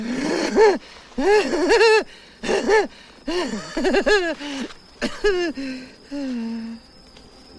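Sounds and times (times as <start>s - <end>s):
lunatic laughing: 0.0s - 4.4s, 5.0s - 5.7s.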